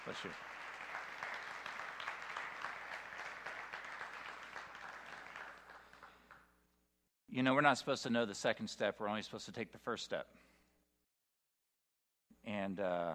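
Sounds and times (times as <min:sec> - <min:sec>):
speech: 0:00.0 - 0:00.6, 0:07.3 - 0:10.5, 0:12.4 - 0:13.1
audience applause: 0:00.0 - 0:06.4.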